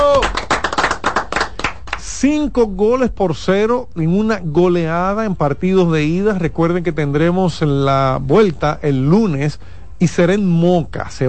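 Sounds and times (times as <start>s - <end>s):
person shouting: 0.0s - 0.4s
hand clapping: 0.0s - 2.1s
speech: 2.2s - 11.2s.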